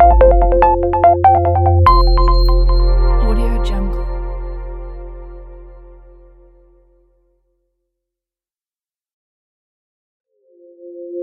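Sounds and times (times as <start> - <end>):
minimalistic logo sting: 0.1 - 6.8.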